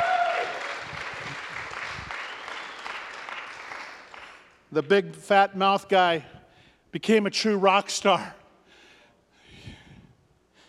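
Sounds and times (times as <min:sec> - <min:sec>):
audience applause: 0:00.0 - 0:04.6
speech: 0:04.7 - 0:08.4.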